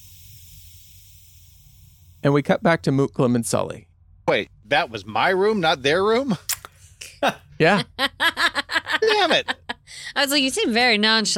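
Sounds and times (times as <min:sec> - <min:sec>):
gas hissing into a room: 0:00.0 - 0:02.4
speech: 0:02.2 - 0:11.3
laughter: 0:07.2 - 0:09.8.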